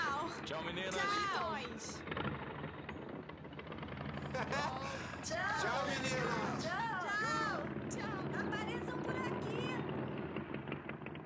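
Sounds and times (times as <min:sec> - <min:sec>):
speech: 0:00.5 - 0:02.4, 0:04.4 - 0:09.8
motorcycle engine idling: 0:02.0 - 0:11.2
laughter: 0:04.2 - 0:07.7.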